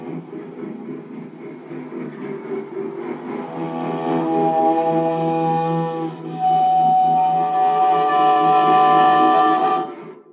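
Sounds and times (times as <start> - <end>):
yaybahar playing: 3.2 - 10.1.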